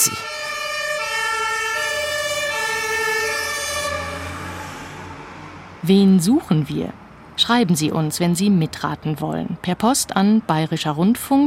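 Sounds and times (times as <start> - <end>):
fire engine siren wailing: 0.0 - 5.8
speech: 5.8 - 11.4.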